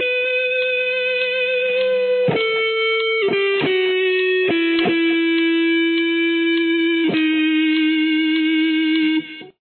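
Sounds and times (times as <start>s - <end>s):
guitar lick: 0.0s - 9.5s.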